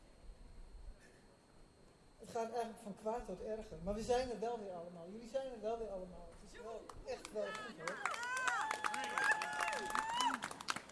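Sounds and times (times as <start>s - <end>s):
speech: 2.3s - 8.2s
crowd applause: 7.2s - 10.8s.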